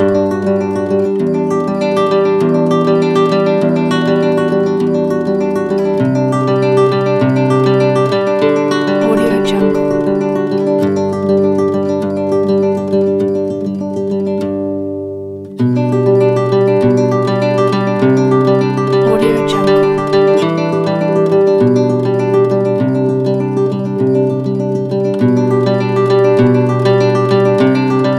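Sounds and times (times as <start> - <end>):
inspiring acoustic guitar music: 0.0 - 28.1.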